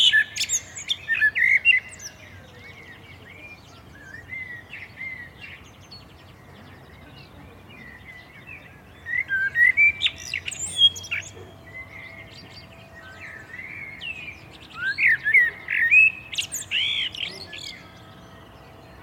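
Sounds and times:
common blackbird singing: 0:00.0 - 0:19.0.

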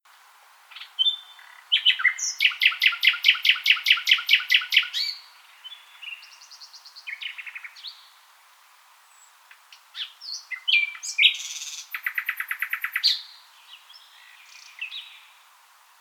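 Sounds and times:
common nightingale song: 0:00.7 - 0:08.1, 0:10.0 - 0:15.3.

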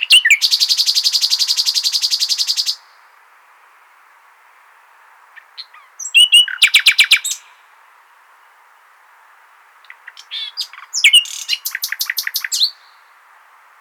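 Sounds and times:
common nightingale buzzy trills and rattling phrases: 0:00.0 - 0:02.8, 0:05.4 - 0:07.5, 0:09.8 - 0:13.1.

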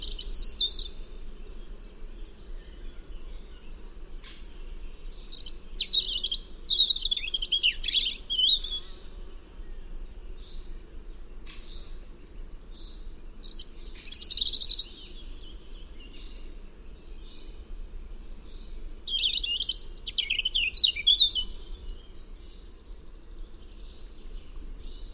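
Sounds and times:
European robin singing: 0:00.0 - 0:01.0, 0:02.2 - 0:09.1, 0:12.8 - 0:16.4, 0:18.5 - 0:22.2
hiss: 0:00.0 - 0:25.1.

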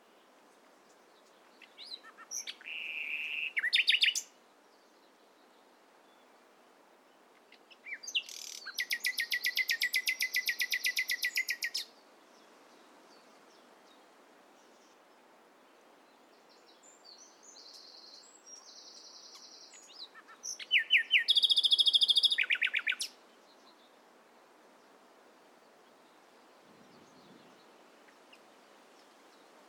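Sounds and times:
Common nightingale Luscinia megarhynchos whistled song: 0:01.6 - 0:04.3, 0:07.8 - 0:11.9, 0:16.8 - 0:23.2.

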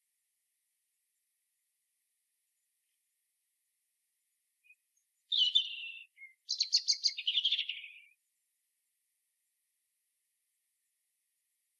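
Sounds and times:
European robin warbling song: 0:04.6 - 0:08.2.

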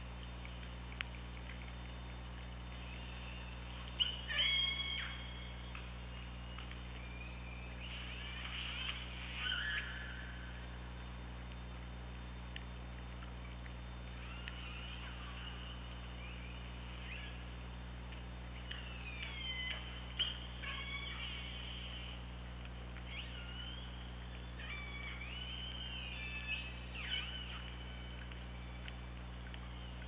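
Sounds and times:
low underwater hum: 0:00.0 - 0:30.0
killer whale calls: 0:04.0 - 0:05.3, 0:07.8 - 0:10.4, 0:14.2 - 0:15.7, 0:18.8 - 0:22.1, 0:23.1 - 0:23.9, 0:24.6 - 0:27.7.

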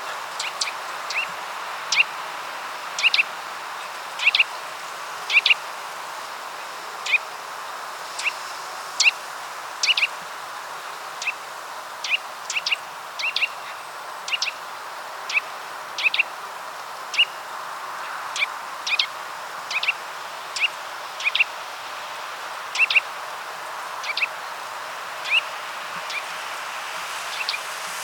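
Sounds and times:
steady background hiss: 0:00.0 - 0:28.0
Eurasian nuthatch sharp rising call notes: 0:00.1 - 0:02.2, 0:03.0 - 0:03.3, 0:04.2 - 0:04.6, 0:05.3 - 0:05.6, 0:07.0 - 0:07.3, 0:08.2 - 0:08.4, 0:09.8 - 0:10.2, 0:12.0 - 0:14.6, 0:15.3 - 0:16.4, 0:17.1 - 0:17.4, 0:18.3 - 0:21.6, 0:22.6 - 0:23.2, 0:23.9 - 0:28.0.

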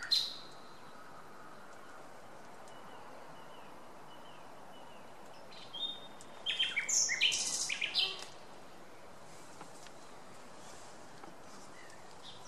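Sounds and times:
common nightingale Luscinia megarhynchos singing whistled rattling and clicking phrases: 0:00.0 - 0:01.0, 0:02.6 - 0:08.3.

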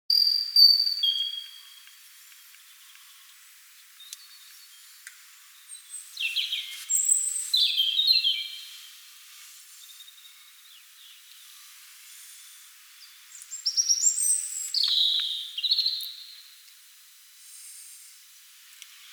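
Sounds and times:
European robin singing: 0:00.1 - 0:01.9, 0:05.7 - 0:08.8, 0:13.0 - 0:16.3
faint background hiss: 0:00.2 - 0:19.1.

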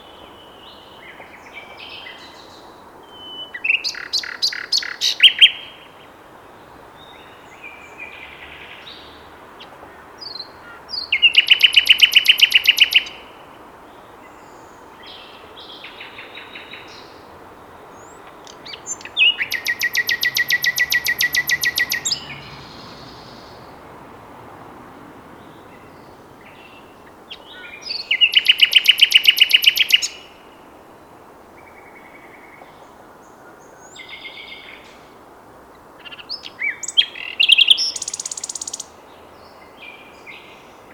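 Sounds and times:
common nightingale singing: 0:00.0 - 0:06.0, 0:06.6 - 0:24.2, 0:25.2 - 0:30.7, 0:35.8 - 0:40.9.

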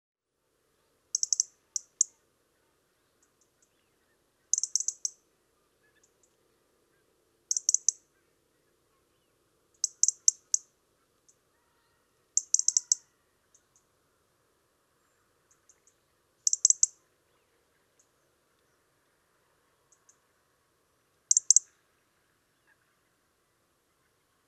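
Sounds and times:
faint low hum: 0:00.2 - 0:24.4
European robin giving ticking calls: 0:01.1 - 0:02.2, 0:04.5 - 0:05.2, 0:07.5 - 0:08.1, 0:09.7 - 0:10.7, 0:12.4 - 0:13.9, 0:15.4 - 0:17.0, 0:19.8 - 0:20.3, 0:21.3 - 0:21.8.

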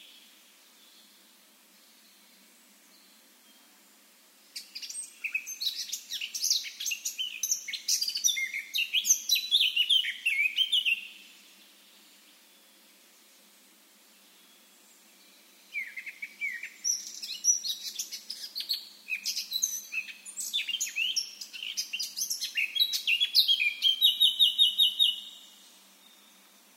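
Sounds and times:
Eurasian blackcap song: 0:04.5 - 0:12.7, 0:14.4 - 0:26.6.

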